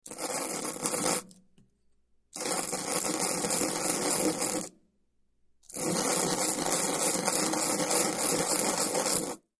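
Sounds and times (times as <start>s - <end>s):
granular powder grinding and stirring: 0.0s - 1.4s, 2.3s - 4.8s, 5.6s - 9.5s.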